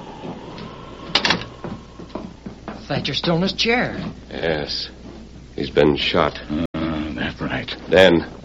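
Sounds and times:
door opening: 1.1s - 1.8s
speech: 2.9s - 5.0s, 5.6s - 6.7s, 7.9s - 8.4s.

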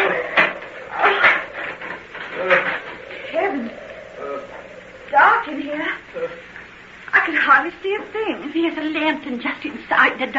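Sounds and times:
howling wind: 0.0s - 6.8s
speech: 7.9s - 10.3s.

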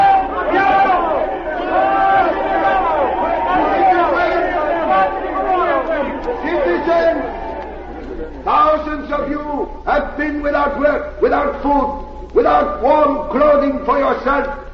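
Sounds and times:
crowd applauding: 0.0s - 9.1s
speech: 10.8s - 14.6s.

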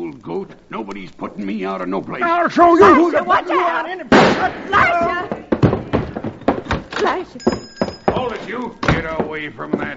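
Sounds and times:
speech: 0.2s - 5.4s, 8.2s - 9.9s
overlapping excited voices: 0.8s - 5.5s
gunshot in a radio drama: 4.1s - 4.7s
thumping noises: 4.1s - 9.9s.

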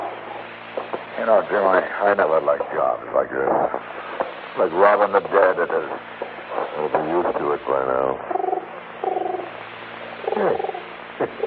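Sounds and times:
speech: 0.8s - 6.2s, 6.8s - 8.4s, 10.4s - 11.4s
pigeon cooing on a windowsill: 8.3s - 9.6s, 10.2s - 11.4s.

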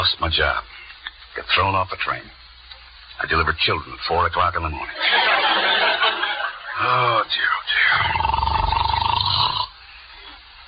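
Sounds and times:
speech: 0.1s - 0.8s, 1.4s - 2.4s, 3.2s - 6.2s, 6.8s - 8.6s
laughter: 4.9s - 7.2s
snoring: 7.9s - 9.7s.

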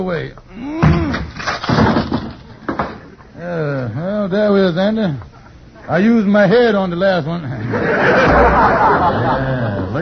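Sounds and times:
speech: 0.0s - 1.9s, 4.2s - 5.3s, 5.9s - 10.0s
wooden door bursting and splintering: 0.8s - 3.0s
laughter: 7.4s - 10.0s.

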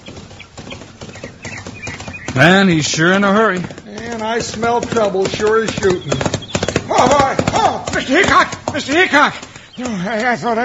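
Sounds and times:
team of horses reined to a stop on a road, hooves clip-clopping: 0.0s - 10.6s
speech: 2.4s - 6.3s, 7.0s - 10.6s.

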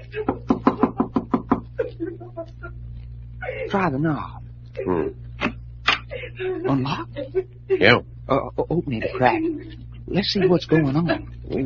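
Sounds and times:
speech: 0.1s - 0.4s, 2.4s - 5.5s, 6.2s - 11.6s
rapping knock on a door: 0.5s - 1.7s.

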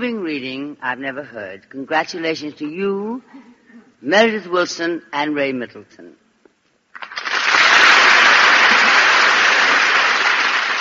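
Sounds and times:
speech: 0.0s - 6.2s
audience applause: 7.0s - 10.7s.

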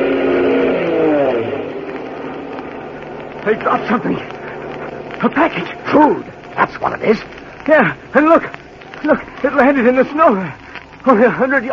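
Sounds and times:
army plane engine approaching: 0.0s - 8.9s
speech: 3.4s - 4.4s, 5.2s - 11.7s.

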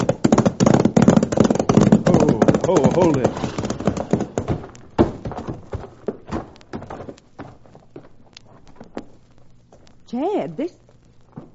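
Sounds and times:
several horses' hooves clip-clopping at a trot: 0.0s - 11.5s
speech: 2.7s - 3.5s.

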